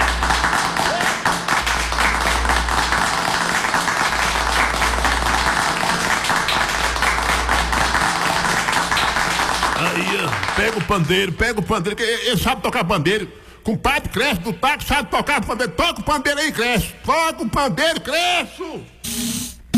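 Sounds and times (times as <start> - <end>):
audience applause: 0.0 - 11.4
speech: 10.9 - 19.4.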